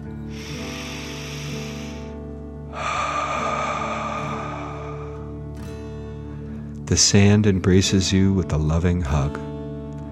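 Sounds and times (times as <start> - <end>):
deep breath in and out: 0.1 - 6.7
speech: 6.9 - 9.5.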